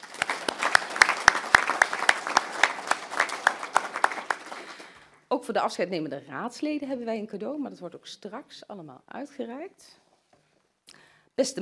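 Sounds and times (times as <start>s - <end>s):
applause: 0.0s - 5.2s
speech: 5.3s - 10.0s, 11.4s - 11.6s.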